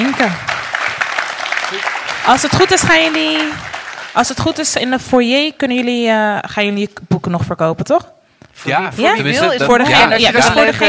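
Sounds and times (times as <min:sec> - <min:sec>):
audience applause: 0:00.0 - 0:04.7
speech: 0:00.2 - 0:00.5, 0:02.3 - 0:03.6, 0:04.2 - 0:10.8.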